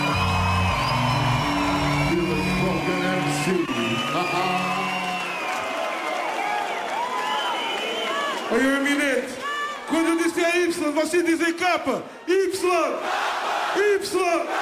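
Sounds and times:
whoops and yells: 0.0s - 8.4s
audience applause: 0.0s - 9.7s
speech: 8.5s - 14.6s.

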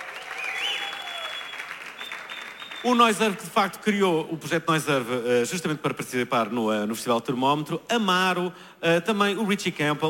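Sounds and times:
audience applause: 0.0s - 3.3s
speech: 2.8s - 10.0s.

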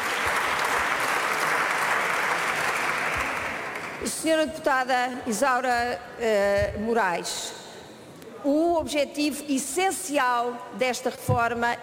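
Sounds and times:
loud applause from parliamentary benches: 0.0s - 4.1s
speech: 4.0s - 7.6s, 8.4s - 11.8s.

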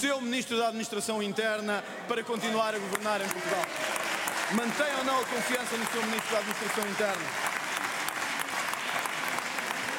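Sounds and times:
speech: 0.0s - 7.5s
faint clapping in the Portuguese parliament: 2.4s - 9.9s.

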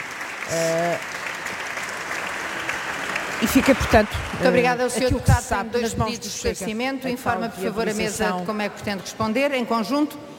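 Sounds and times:
standing ovation applause in parliament: 0.0s - 5.6s
speech: 0.5s - 1.2s, 3.4s - 10.3s.

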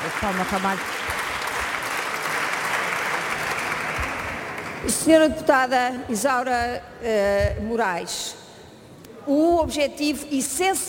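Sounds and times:
loud applause from parliamentary benches: 0.0s - 4.9s
speech: 0.2s - 1.0s, 4.8s - 8.4s, 9.3s - 10.8s.

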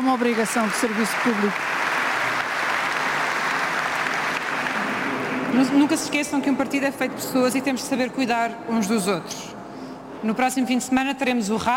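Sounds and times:
applause: 0.0s - 6.2s
speech: 0.1s - 1.8s, 5.5s - 9.6s, 10.2s - 11.7s.

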